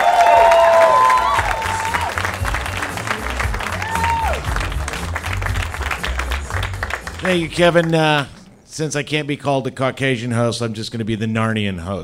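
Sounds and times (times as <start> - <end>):
audience applause welcoming a host at a live storytelling event: 0.0 - 8.5
speech: 7.3 - 12.0.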